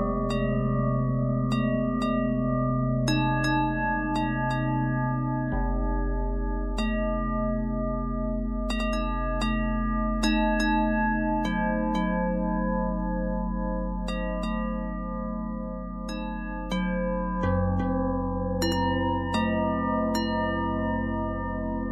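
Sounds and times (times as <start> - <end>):
bells with harmonic twist: 0.0 - 21.9.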